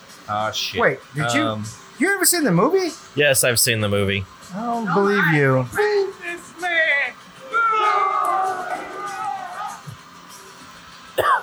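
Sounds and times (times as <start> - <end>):
speech: 0.3 - 6.8
booing crowd soundboard effect: 6.8 - 10.1.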